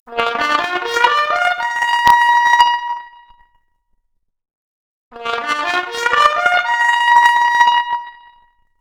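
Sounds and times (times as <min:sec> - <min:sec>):
trumpet arpeggio: 0:00.1 - 0:02.9, 0:05.2 - 0:08.2.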